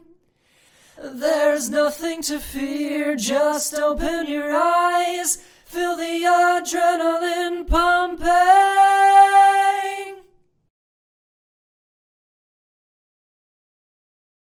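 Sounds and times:
a cappella singing: 0.8s - 10.4s.

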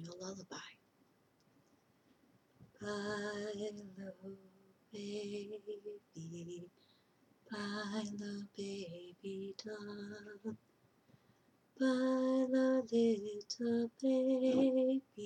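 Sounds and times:
lullaby: 2.8s - 6.8s, 7.5s - 10.6s, 11.8s - 15.2s.

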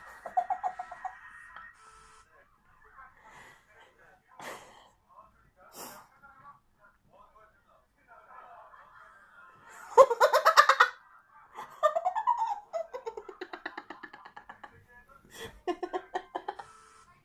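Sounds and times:
laughing: 0.0s - 1.7s, 9.7s - 16.8s.

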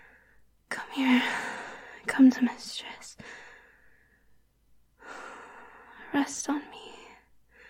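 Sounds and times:
woman breathing heavily catching her breath after exertion: 1.1s - 2.1s, 3.2s - 4.4s, 5.0s - 6.1s, 7.5s - 7.6s
speech: 2.0s - 3.4s, 6.1s - 6.9s.

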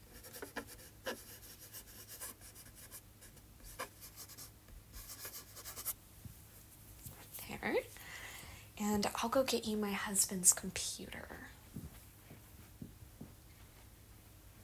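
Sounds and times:
pen writing by hand on paper: 0.2s - 3.0s
speech: 8.8s - 11.4s.

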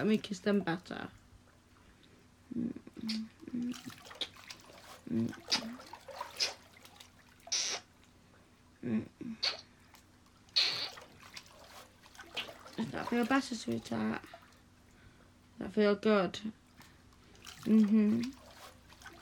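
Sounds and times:
speech: 0.0s - 1.2s, 2.5s - 4.2s, 5.0s - 6.5s, 8.8s - 9.6s, 12.8s - 14.4s, 15.6s - 16.6s, 17.6s - 18.4s
water being poured: 3.5s - 7.8s, 10.3s - 14.7s, 17.2s - 19.1s.

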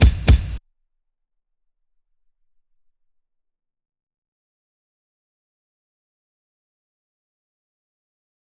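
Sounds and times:
drums: 0.0s - 0.6s.

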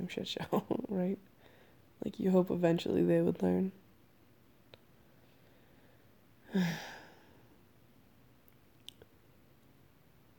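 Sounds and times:
speech: 0.0s - 1.3s, 2.0s - 3.8s, 6.5s - 6.9s
person yawning: 6.5s - 7.3s.

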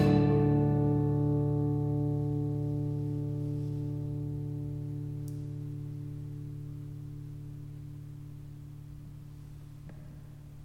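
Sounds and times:
bottleneck slide guitar blues: 0.0s - 6.2s.

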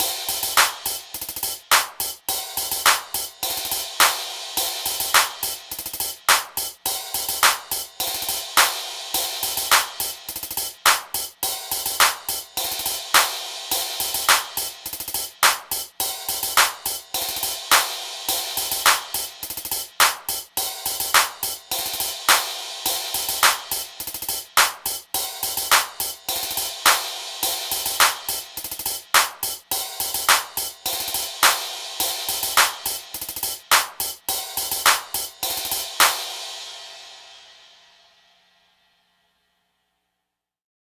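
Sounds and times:
epic hip hop hi-hats: 0.0s - 38.7s
epic hip hop claps: 0.6s - 1.0s, 1.7s - 2.1s, 2.9s - 3.2s, 4.0s - 4.2s, 5.2s - 5.6s, 6.3s - 6.7s, 7.4s - 7.8s, 8.6s - 8.8s, 9.7s - 10.0s, 10.9s - 11.2s, 12.0s - 12.3s, 13.2s - 13.4s, 14.3s - 14.6s, 15.4s - 15.8s, 16.6s - 16.8s, 17.7s - 17.9s, 18.9s - 19.1s, 20.0s - 20.3s, 21.2s - 21.4s, 22.3s - 22.5s, 23.4s - 23.8s, 24.6s - 24.9s, 25.7s - 26.0s, 26.8s - 27.1s, 28.0s - 28.3s, 29.2s - 29.5s, 30.3s - 30.7s, 31.4s - 31.7s, 32.6s - 33.0s, 33.7s - 34.1s, 34.8s - 35.3s, 36.0s - 36.2s.

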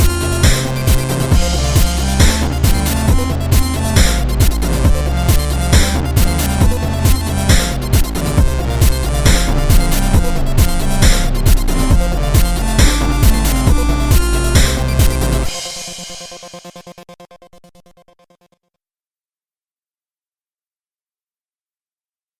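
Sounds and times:
remix music: 0.0s - 17.4s.

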